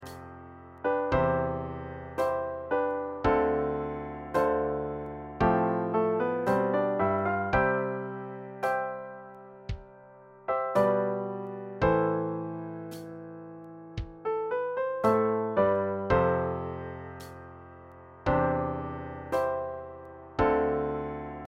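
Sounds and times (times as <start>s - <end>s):
piano: 0.0s - 21.4s
drum: 14.0s - 14.2s.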